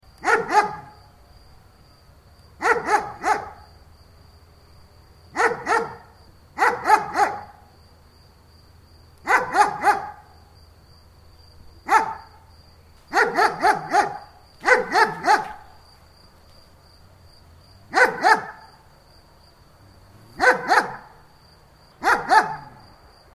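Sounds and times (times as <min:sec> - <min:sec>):
German shepherd barking: 0:00.2 - 0:01.0, 0:02.6 - 0:03.8, 0:05.3 - 0:07.7, 0:09.2 - 0:10.4, 0:11.8 - 0:12.5, 0:13.1 - 0:15.8, 0:17.9 - 0:18.8, 0:20.1 - 0:21.3, 0:22.0 - 0:22.9.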